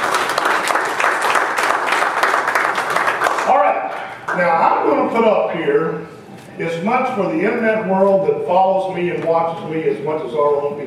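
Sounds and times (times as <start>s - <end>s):
audience applause: 0.0s - 3.8s
speech: 4.4s - 10.8s.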